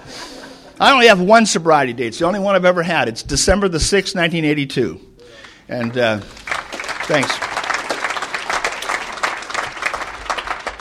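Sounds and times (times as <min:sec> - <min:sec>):
speech: 0:00.8 - 0:06.4, 0:07.1 - 0:07.5
audience clapping: 0:05.4 - 0:10.7.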